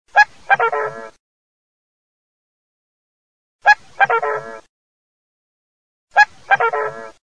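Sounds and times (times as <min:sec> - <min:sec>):
goose: 0:00.1 - 0:01.2, 0:03.6 - 0:04.7, 0:06.1 - 0:07.2
swan: 0:00.1 - 0:01.2, 0:03.6 - 0:04.7, 0:06.1 - 0:07.2.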